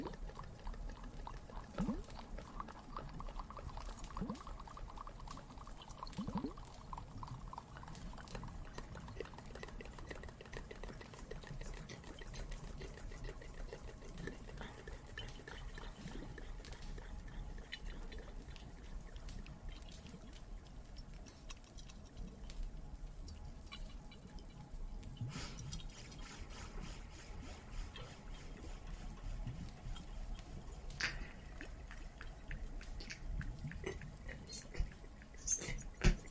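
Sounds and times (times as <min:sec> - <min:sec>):
cave water: 0:00.0 - 0:36.3
fireplace: 0:05.3 - 0:36.3.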